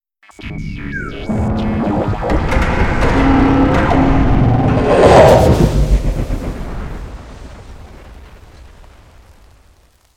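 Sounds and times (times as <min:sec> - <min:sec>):
cave maze guardian activation effect: 0:00.8 - 0:07.2.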